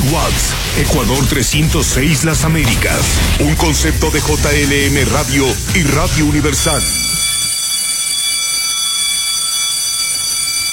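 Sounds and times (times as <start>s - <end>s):
speech: 0.1s - 7.1s
bell ringing to start the show: 5.4s - 10.7s.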